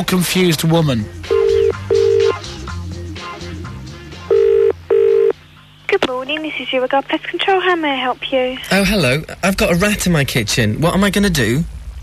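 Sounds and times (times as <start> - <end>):
speech: 0.0 - 1.3, 6.3 - 12.0
low musical bed: 0.0 - 5.9
telephone ringing tone in double rings: 1.2 - 2.4, 4.3 - 5.3.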